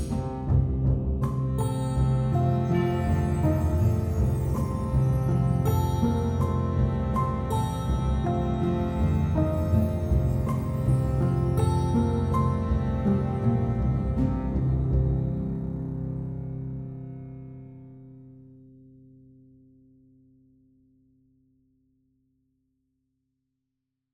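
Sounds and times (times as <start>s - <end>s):
harp playing interludes: 0.0s - 17.8s
violin playing interludes: 0.0s - 18.3s.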